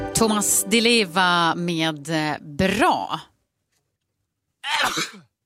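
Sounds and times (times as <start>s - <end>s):
speech: 0.2s - 3.3s, 4.8s - 5.3s
sneeze from someone with pollen allergy: 4.6s - 5.4s.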